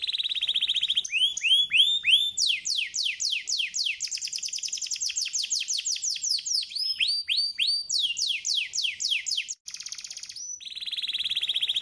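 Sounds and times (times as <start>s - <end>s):
canary singing: 0.0s - 11.8s.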